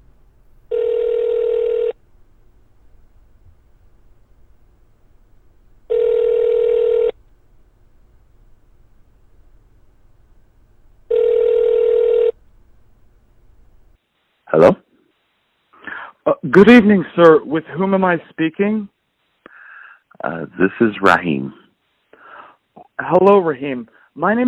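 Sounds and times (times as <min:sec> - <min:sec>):
telephone dialing: 0:00.7 - 0:02.0, 0:05.9 - 0:07.1, 0:11.1 - 0:12.3
speech: 0:16.5 - 0:19.0, 0:20.2 - 0:21.6, 0:23.0 - 0:24.4.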